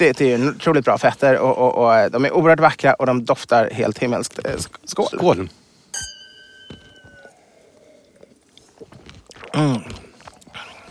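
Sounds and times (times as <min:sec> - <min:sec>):
speech: 0:00.0 - 0:06.1, 0:09.5 - 0:10.0
chewing an almond into the microphone: 0:08.0 - 0:10.8.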